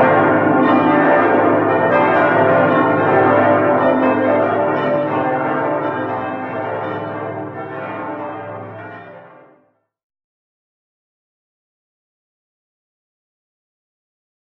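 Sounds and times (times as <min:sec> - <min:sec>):
Limburg Cathedral bells ringing: 0:00.0 - 0:09.6.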